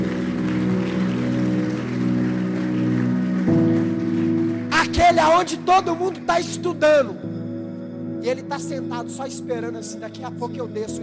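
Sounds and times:
crowd clapping: 0:00.0 - 0:06.8
sustained keyboard or organ chords: 0:00.0 - 0:11.0
speech: 0:05.1 - 0:07.2, 0:08.2 - 0:11.0.

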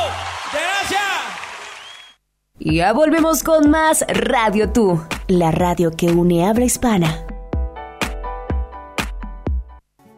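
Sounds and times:
applause: 0:00.0 - 0:02.2
speech: 0:02.6 - 0:07.3.

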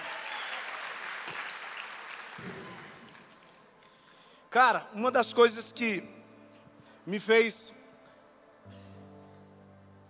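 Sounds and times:
audience applause: 0:00.0 - 0:03.8
speech: 0:04.6 - 0:06.2, 0:07.1 - 0:07.8.

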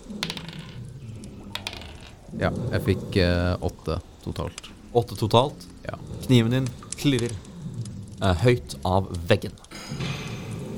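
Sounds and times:
dice rolling across a hard surface: 0:00.0 - 0:03.0, 0:05.9 - 0:09.3
speech: 0:02.3 - 0:07.5, 0:08.2 - 0:10.2.

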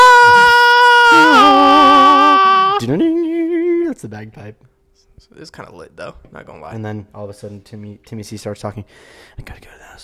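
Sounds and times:
person imitating a movie scream: 0:00.0 - 0:03.5
speech: 0:04.0 - 0:10.0.

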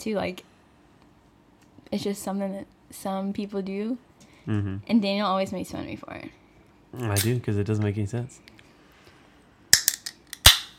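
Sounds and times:
speech: 0:00.0 - 0:00.5, 0:01.9 - 0:08.5
drink can popping open: 0:09.8 - 0:10.7.

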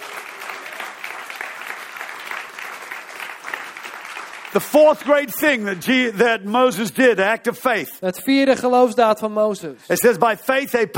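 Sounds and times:
audience clapping: 0:00.0 - 0:06.7
speech: 0:04.5 - 0:10.9.

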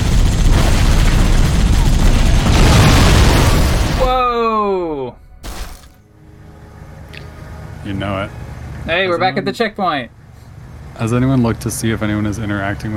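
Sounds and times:
video game gunfire and explosions: 0:00.0 - 0:06.2
speech: 0:07.9 - 0:10.2, 0:11.0 - 0:12.9.

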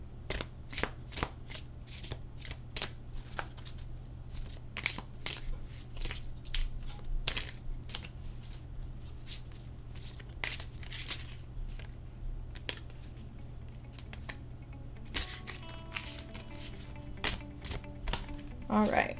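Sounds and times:
tarot cards shuffling: 0:00.3 - 0:14.4, 0:15.0 - 0:18.4
single card being pulled from the deck: 0:15.1 - 0:18.4
speech: 0:18.8 - 0:19.0.

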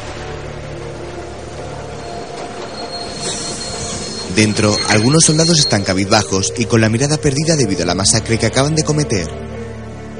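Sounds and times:
train running on rails: 0:00.0 - 0:07.3
high metallic train wheel squeal: 0:01.6 - 0:06.9
speech: 0:04.4 - 0:09.4.

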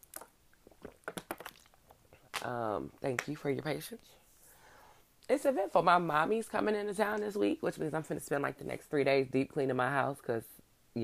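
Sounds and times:
person drinking water: 0:00.0 - 0:02.4
speech: 0:02.4 - 0:04.2, 0:05.3 - 0:11.0.

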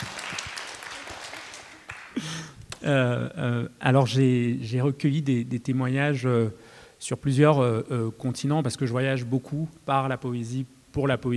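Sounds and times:
audience applause: 0:00.0 - 0:02.5
speech: 0:02.8 - 0:11.3.

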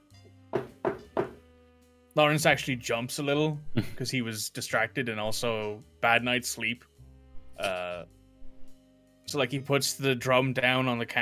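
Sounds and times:
knocking on a door: 0:00.5 - 0:01.4
speech: 0:02.2 - 0:06.9, 0:09.3 - 0:11.1.

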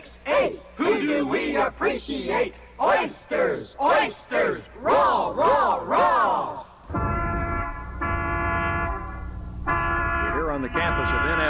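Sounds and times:
street traffic low rumble: 0:00.0 - 0:11.4
speech: 0:00.4 - 0:06.6
brassy vehicle horn blaring: 0:06.9 - 0:11.4.

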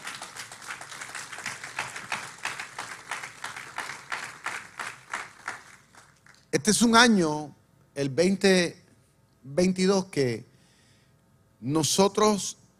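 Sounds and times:
audience applauding: 0:00.0 - 0:06.5
speech: 0:06.5 - 0:08.8, 0:09.4 - 0:10.5, 0:11.6 - 0:12.6.

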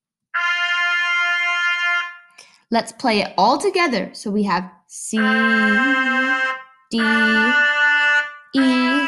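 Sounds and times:
trumpet sounding the note F with the first valve pressed: 0:00.4 - 0:02.4, 0:05.1 - 0:09.0
speech: 0:02.7 - 0:07.7, 0:08.5 - 0:08.7.

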